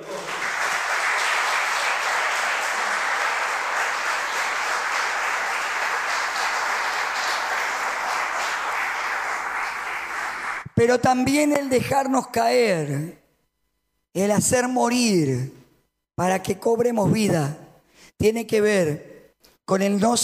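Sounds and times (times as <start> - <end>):
applause: 0.0 - 10.8
speech: 10.8 - 13.2, 14.1 - 15.6, 16.2 - 17.6, 18.2 - 19.1, 19.7 - 20.2.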